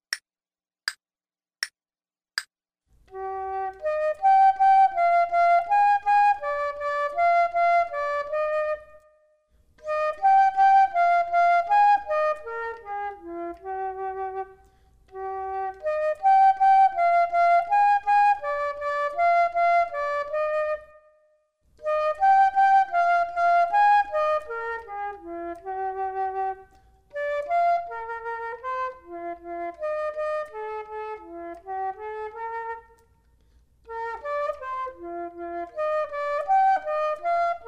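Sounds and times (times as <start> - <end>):
flute duet: 3.0 - 37.6.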